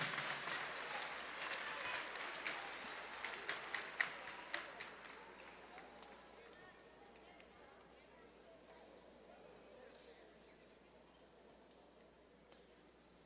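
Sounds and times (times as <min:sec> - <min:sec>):
crowd applause: 0:00.0 - 0:06.4.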